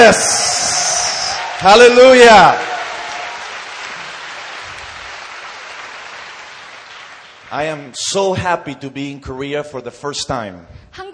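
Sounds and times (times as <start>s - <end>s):
speech: 0.0s - 0.5s, 1.6s - 2.7s, 7.5s - 11.1s
audience applauding: 0.0s - 8.0s.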